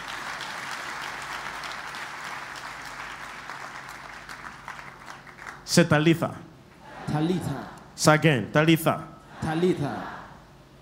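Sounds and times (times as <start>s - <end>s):
audience clapping hands: 0.0s - 5.7s
speech: 5.7s - 6.5s, 7.1s - 10.2s.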